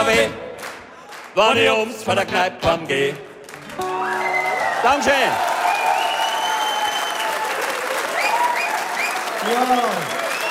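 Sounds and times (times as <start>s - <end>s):
speech: 0.0s - 0.4s, 1.4s - 3.9s, 4.8s - 5.5s, 9.4s - 10.2s
audience applause: 3.5s - 10.4s
cheers and whoops: 3.8s - 10.4s.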